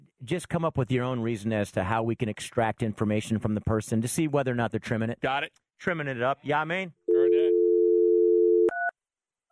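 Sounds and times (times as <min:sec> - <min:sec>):
speech: 0:00.2 - 0:07.0
steady low telephone dial tone: 0:07.1 - 0:08.9.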